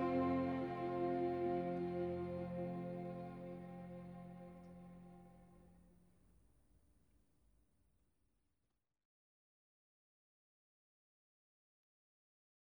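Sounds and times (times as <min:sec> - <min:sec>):
instrumental music: 0:00.0 - 0:04.7.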